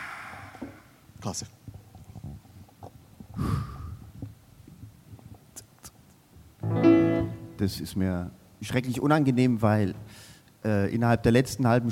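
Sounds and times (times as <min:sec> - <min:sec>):
group breathing in together: 0:00.0 - 0:01.0, 0:03.4 - 0:04.1
speech: 0:01.2 - 0:01.6, 0:07.6 - 0:11.8.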